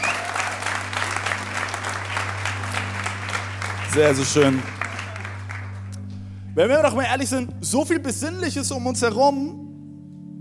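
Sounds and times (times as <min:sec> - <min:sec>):
audience applause for the band: 0:00.0 - 0:06.1
speech: 0:03.9 - 0:04.8, 0:06.6 - 0:09.6.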